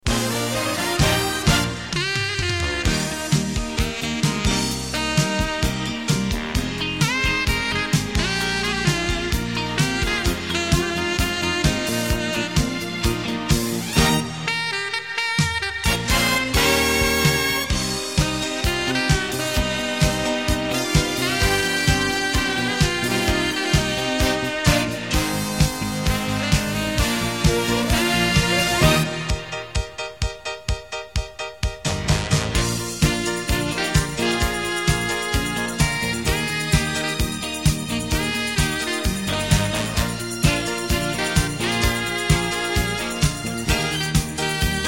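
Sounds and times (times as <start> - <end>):
instrumental music: 0.0 - 44.8.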